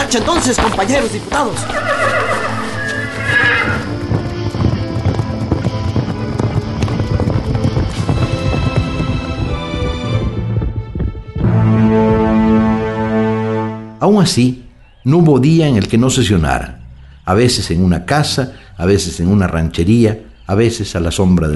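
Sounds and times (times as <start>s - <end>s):
saddled horses' hooves clip-clopping as they ride off: 0.0s - 12.8s
speech: 0.1s - 2.5s, 14.0s - 21.5s
saddled horses whinnying: 1.3s - 6.6s.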